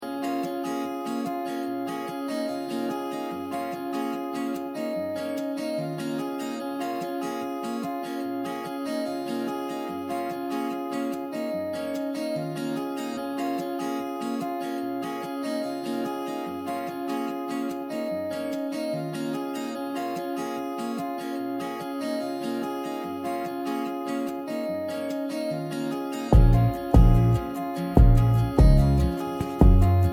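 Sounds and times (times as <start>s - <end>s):
acoustic music: 0.0s - 30.1s.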